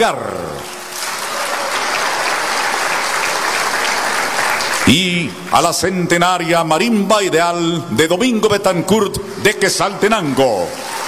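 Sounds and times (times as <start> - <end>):
speech: 0.0 - 0.4, 4.9 - 10.9
welcoming applause: 0.0 - 6.5, 9.9 - 11.0.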